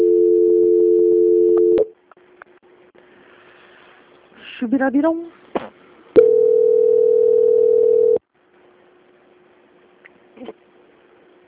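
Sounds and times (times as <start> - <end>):
telephone line tone while a bank call is transferred: 0.0 - 1.9, 6.2 - 8.2
speech: 4.6 - 5.8.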